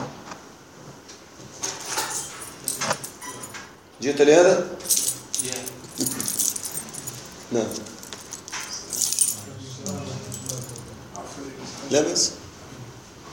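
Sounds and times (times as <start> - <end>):
keys jangling: 1.7 - 3.8, 4.8 - 11.8
speech: 4.0 - 5.8, 7.5 - 7.9, 11.9 - 12.4.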